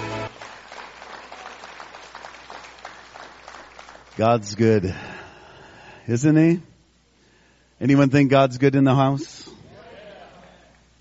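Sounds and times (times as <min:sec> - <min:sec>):
crowd clapping: 0:00.0 - 0:04.6
speech: 0:04.2 - 0:05.1, 0:06.1 - 0:06.7, 0:07.8 - 0:09.5.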